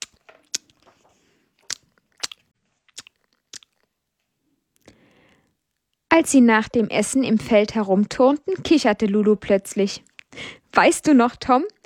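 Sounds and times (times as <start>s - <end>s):
soft smacking chewing while eating cheese: 0.0s - 4.0s, 10.0s - 10.4s
speech: 6.2s - 11.8s.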